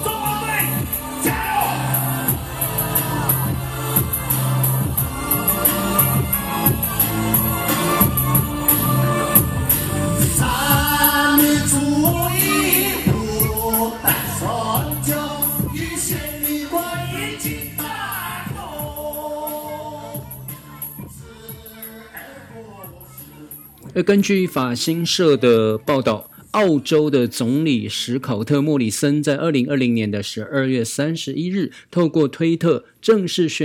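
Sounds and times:
full instrumental accompaniment: 0:00.0 - 0:17.9
national anthem sung in the Atayal language: 0:00.0 - 0:20.0
speech: 0:24.0 - 0:33.6.

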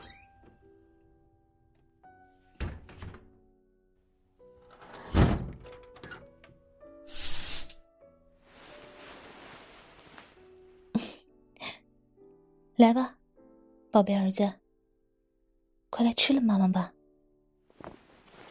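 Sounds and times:
doors and windows shutting with thunks and knocks: 0:02.6 - 0:03.3, 0:04.6 - 0:06.6
speech: 0:12.8 - 0:13.2, 0:14.0 - 0:14.6, 0:16.0 - 0:17.0.

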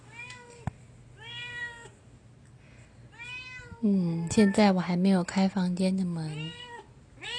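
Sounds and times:
cats meowing in greeting: 0:01.2 - 0:02.0, 0:03.1 - 0:04.7, 0:06.3 - 0:07.3
speech: 0:03.8 - 0:06.6.

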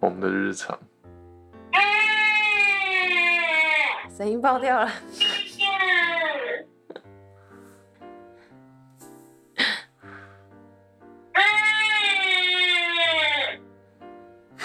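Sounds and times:
speech: 0:00.0 - 0:00.9, 0:04.2 - 0:05.2
baby whimpering over a baby monitor: 0:01.8 - 0:04.1, 0:05.2 - 0:06.7, 0:11.4 - 0:13.6.

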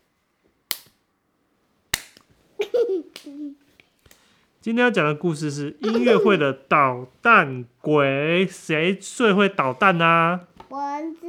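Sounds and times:
hand claps: 0:02.0 - 0:02.3, 0:03.1 - 0:03.4
speech: 0:02.6 - 0:03.7, 0:04.6 - 0:11.2
laughter: 0:05.7 - 0:06.6
brief high child's voice: 0:10.6 - 0:11.2.

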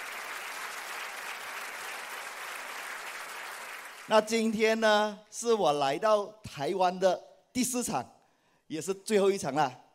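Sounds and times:
audience applause: 0:00.0 - 0:04.1
speech: 0:04.1 - 0:09.8.

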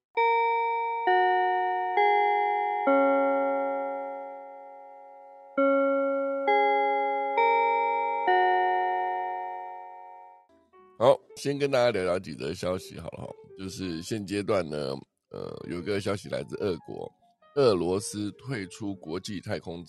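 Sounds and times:
melodic bell chime: 0:00.2 - 0:10.5
speech: 0:11.4 - 0:19.8.

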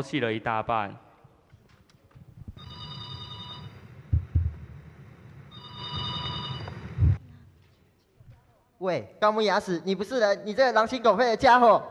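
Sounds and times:
speech: 0:00.0 - 0:01.0, 0:08.8 - 0:11.8
telephone ringing: 0:02.6 - 0:04.2, 0:05.5 - 0:07.2
dull low thumps: 0:04.0 - 0:05.0, 0:06.9 - 0:07.2.

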